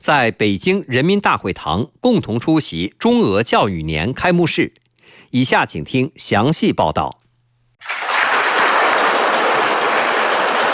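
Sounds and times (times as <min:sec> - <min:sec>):
speech: 0:00.0 - 0:07.2
large crowd applauding warmly: 0:07.8 - 0:10.7.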